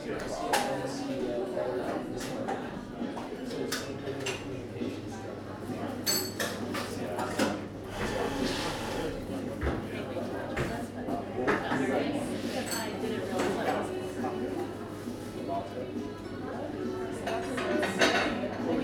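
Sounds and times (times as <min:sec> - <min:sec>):
young people talking in a crowded coffee shop: 0:00.0 - 0:18.8
cups, dishes and cutlery clinking: 0:06.0 - 0:07.5, 0:12.6 - 0:13.6.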